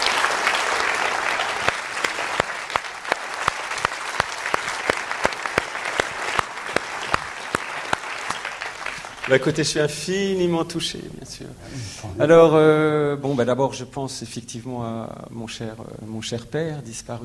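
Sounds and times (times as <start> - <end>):
applause welcoming filmmaker Jacques Audiard: 0.0 - 9.7
speech: 9.3 - 17.2.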